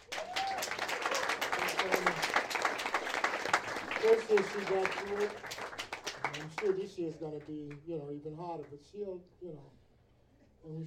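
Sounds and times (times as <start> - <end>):
small group clapping: 0.0 - 7.8
speech: 4.1 - 9.8, 10.6 - 10.8.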